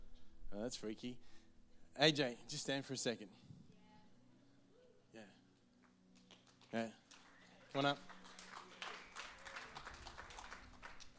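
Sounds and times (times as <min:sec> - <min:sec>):
speech: 0:00.5 - 0:01.4, 0:02.0 - 0:03.5, 0:06.7 - 0:07.0, 0:07.7 - 0:08.1
crowd applauding: 0:06.2 - 0:11.1.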